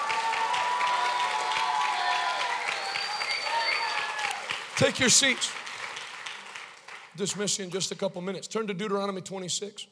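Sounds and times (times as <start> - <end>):
audience applause: 0.0 - 7.4
speech: 4.8 - 5.6, 7.2 - 9.9.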